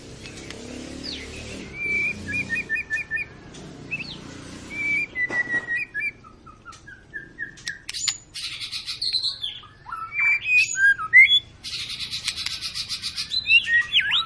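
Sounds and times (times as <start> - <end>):
white-rumped shama song: 0.0 - 14.2.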